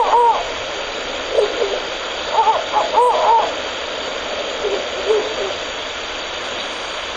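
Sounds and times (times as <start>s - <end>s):
male and female Ural owl hooting: 0.0s - 0.6s, 1.2s - 3.7s, 4.6s - 7.0s.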